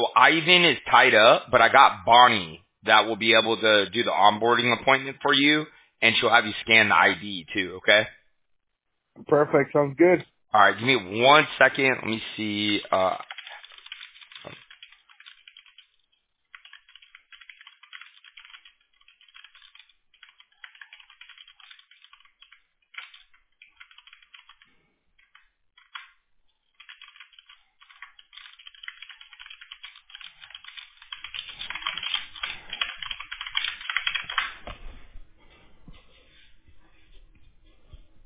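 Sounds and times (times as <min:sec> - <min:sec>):
speech: 0:00.0 - 0:08.2, 0:09.2 - 0:13.3
typing on a computer keyboard while messaging: 0:12.7 - 0:34.6.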